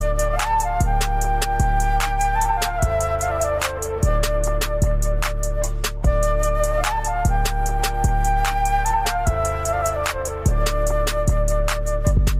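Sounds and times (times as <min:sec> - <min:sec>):
flute cover: 0:00.0 - 0:12.3.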